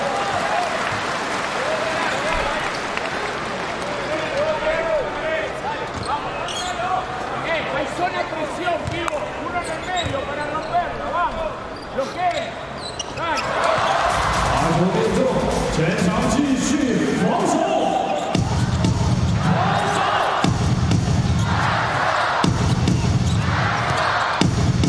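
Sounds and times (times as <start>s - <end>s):
crowd applause in a basketball arena: 0.0s - 4.4s
crowd voices in a basketball arena: 0.0s - 24.8s
sneakers squeaking: 5.8s - 6.9s, 8.8s - 14.2s, 18.0s - 20.1s, 22.8s - 24.5s.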